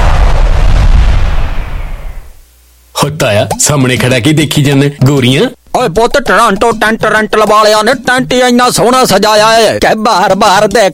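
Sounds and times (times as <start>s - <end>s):
big Diwali-style firecrackers exploding: 0.0s - 2.4s
speech: 3.0s - 10.9s.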